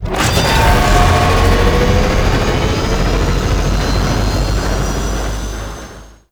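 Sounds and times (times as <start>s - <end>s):
stinger: 0.0s - 6.3s.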